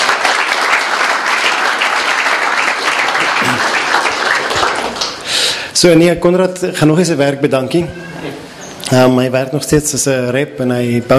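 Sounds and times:
audience applause: 0.0s - 5.5s
speech: 5.8s - 11.1s.

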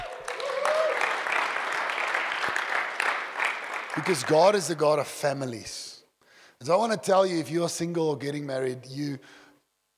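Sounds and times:
audience applauding: 0.0s - 4.8s
speech: 4.0s - 5.9s, 6.6s - 9.4s.

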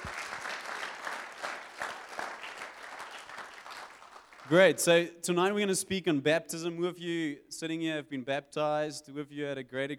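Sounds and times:
audience applause: 0.0s - 4.6s
speech: 4.5s - 9.9s.

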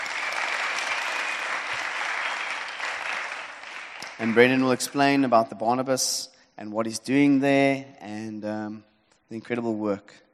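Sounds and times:
audience applause welcoming a speaker: 0.0s - 4.7s
speech: 4.2s - 10.2s.

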